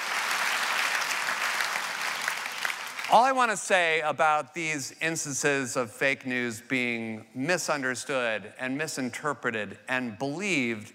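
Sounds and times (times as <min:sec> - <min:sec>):
audience applause: 0:00.0 - 0:03.4
speech: 0:03.1 - 0:10.9.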